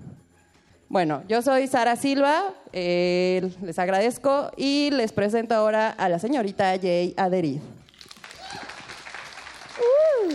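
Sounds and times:
speech: 0.9s - 7.8s
crowd applause: 8.0s - 10.3s.

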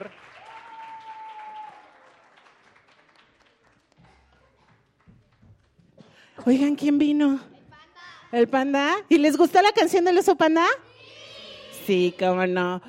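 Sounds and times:
audience applause: 0.0s - 5.8s
speech: 6.4s - 7.5s, 8.3s - 10.9s, 11.9s - 12.8s.

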